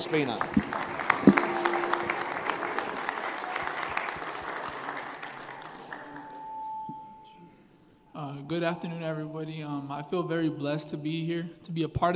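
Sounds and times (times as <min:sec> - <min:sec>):
speech: 0:00.0 - 0:00.6, 0:08.6 - 0:12.1
crowd applause: 0:00.0 - 0:06.7
faint held tone: 0:01.3 - 0:02.5, 0:06.0 - 0:09.4.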